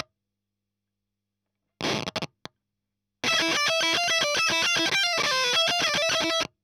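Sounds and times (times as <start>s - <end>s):
fuzz guitar ending: 3.2s - 6.4s.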